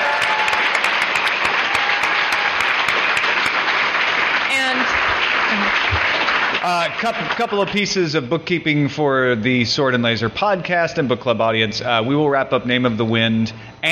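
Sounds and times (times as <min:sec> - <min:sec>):
audience applause: 0:00.0 - 0:07.9
speech: 0:06.7 - 0:13.9.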